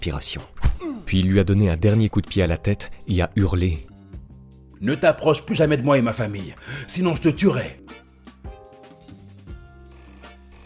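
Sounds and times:
speech: 0:00.0 - 0:03.9, 0:04.8 - 0:08.0
telephone ringing: 0:09.8 - 0:10.6.

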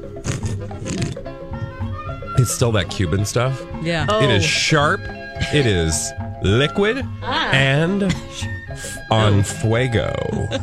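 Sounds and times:
person slurping hot coffee: 0:00.2 - 0:01.2
speech: 0:02.4 - 0:10.6
laughter: 0:04.0 - 0:10.6.

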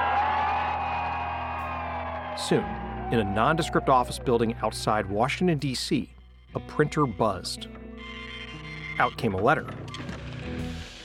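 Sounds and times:
crowd cheering: 0:00.0 - 0:05.9
speech: 0:02.4 - 0:07.8, 0:09.0 - 0:10.0.

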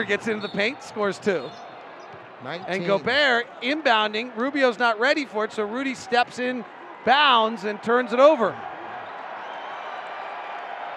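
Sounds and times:
speech: 0:00.0 - 0:01.7, 0:02.4 - 0:08.7
arena crowd whistling: 0:00.0 - 0:01.8, 0:08.9 - 0:10.9
arena crowd cheering: 0:00.0 - 0:10.9
arena crowd applauding: 0:07.1 - 0:10.9.

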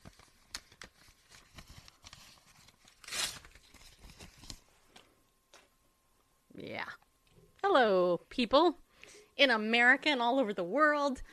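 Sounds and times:
printed paper speech being ripped up: 0:00.0 - 0:04.6
speech: 0:08.4 - 0:08.8, 0:09.4 - 0:11.3.

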